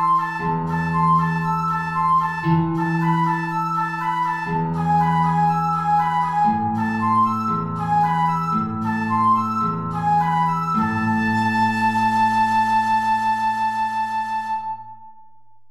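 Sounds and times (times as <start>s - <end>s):
transverse flute playing an allegro in a high register: 0.0s - 15.6s.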